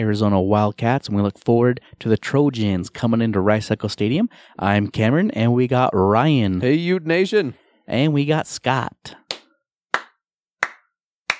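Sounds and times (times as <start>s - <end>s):
speech: 0.0s - 9.2s
slow clap: 9.2s - 11.3s.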